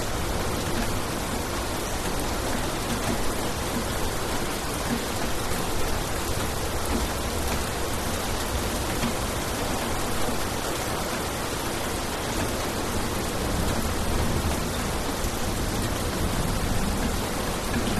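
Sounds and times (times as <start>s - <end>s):
heavy rain on concrete in Bali Indonesia: 0.0s - 17.9s
distant thunder in Bali Indonesia: 13.4s - 17.9s.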